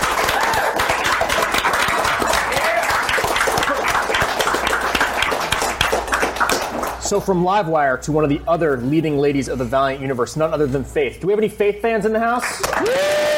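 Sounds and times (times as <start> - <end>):
crowd applauding: 0.0 - 7.2, 12.4 - 13.3
speech: 7.1 - 13.3.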